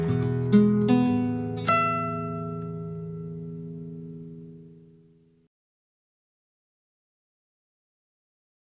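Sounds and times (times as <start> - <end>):
guitar: 0.0 - 5.5.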